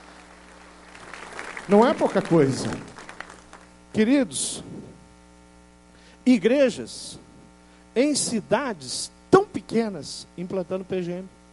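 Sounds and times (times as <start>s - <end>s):
audience applause: 0.0s - 3.7s
speech: 1.7s - 2.9s, 4.0s - 4.8s, 6.3s - 7.2s, 8.0s - 11.4s.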